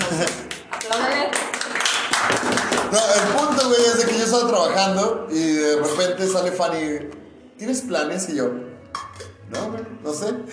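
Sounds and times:
laughter: 0.0s - 0.7s
small group clapping hands: 0.0s - 4.3s
speech: 2.9s - 8.6s, 9.5s - 10.5s.

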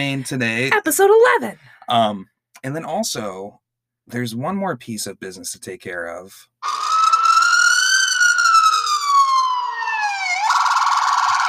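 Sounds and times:
speech: 0.0s - 6.8s
siren alarm: 6.6s - 11.4s.

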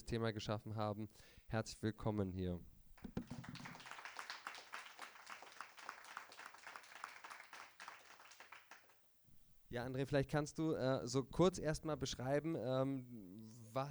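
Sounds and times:
speech: 0.1s - 3.3s, 9.7s - 13.8s
audience applause: 3.0s - 9.0s.

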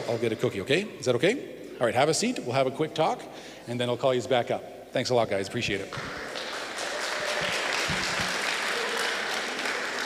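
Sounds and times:
speech: 0.1s - 6.3s
audience applause: 5.9s - 10.0s.

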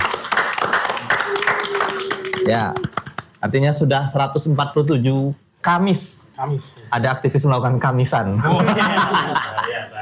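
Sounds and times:
hand clapping: 0.0s - 3.4s
speech: 2.4s - 2.8s, 3.4s - 10.0s
laughter: 8.4s - 9.9s.

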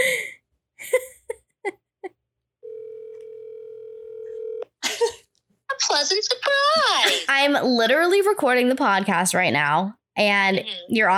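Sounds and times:
telephone dial tone while calling: 2.6s - 4.6s
speech: 6.0s - 11.1s.

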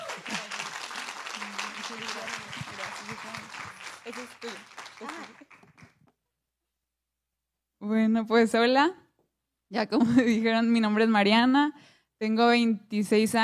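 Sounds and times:
laughter: 0.0s - 3.4s
audience applause: 0.0s - 6.0s
speech: 4.1s - 5.4s, 7.8s - 9.0s, 9.7s - 13.4s.

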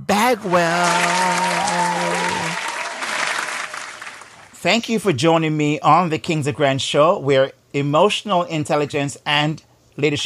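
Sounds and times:
speech: 0.1s - 2.1s, 4.6s - 10.2s
show audience applause welcoming a guest: 0.2s - 4.6s.

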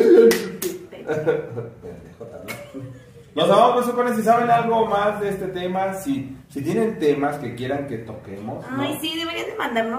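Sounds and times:
hand clapping like a seal: 0.3s - 0.8s
speech: 1.2s - 2.4s, 3.4s - 9.9s.

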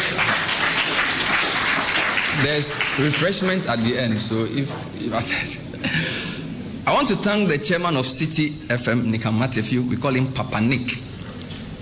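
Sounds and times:
audience clapping: 0.0s - 3.7s
speech: 2.4s - 6.0s, 6.9s - 11.1s.

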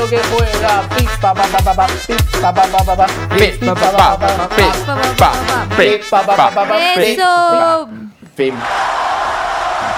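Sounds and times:
speech: 0.0s - 9.0s
audience applause: 8.4s - 9.9s.

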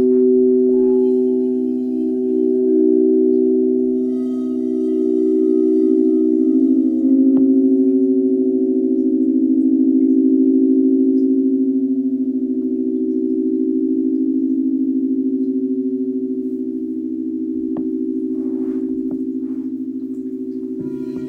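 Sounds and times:
16 C bowl, F bowls and Rose Quartz singing bowls ringing: 0.0s - 21.2s.

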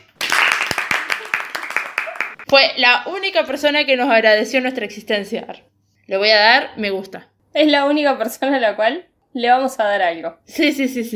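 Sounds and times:
applause: 0.0s - 2.4s
speech: 2.5s - 11.1s.

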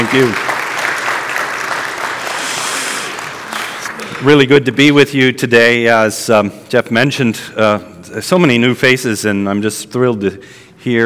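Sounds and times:
crowd applauding: 0.0s - 5.0s
speech: 0.1s - 0.4s, 4.2s - 11.0s.

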